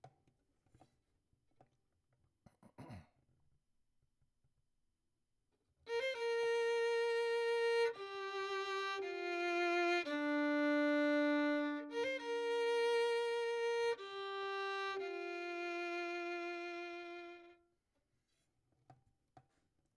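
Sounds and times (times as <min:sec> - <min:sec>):
violin: 0:05.9 - 0:17.6.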